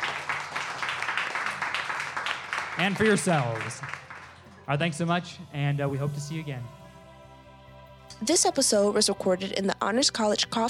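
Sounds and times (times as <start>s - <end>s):
audience applause for panelists in the Honors College Coffee Forum at Texas State: 0.0s - 4.6s
speech: 2.8s - 4.0s, 4.7s - 6.8s, 8.2s - 10.6s.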